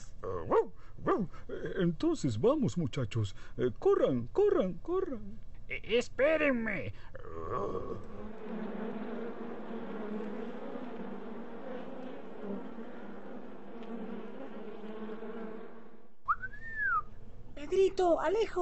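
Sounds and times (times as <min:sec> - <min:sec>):
speech: 0:00.2 - 0:08.7, 0:17.7 - 0:18.6
bees buzzing at a beehive: 0:07.5 - 0:18.0.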